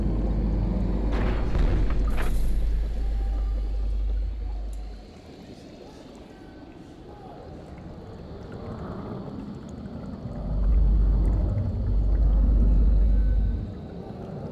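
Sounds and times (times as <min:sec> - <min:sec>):
ambient sound: 0:00.0 - 0:05.5, 0:10.1 - 0:13.9.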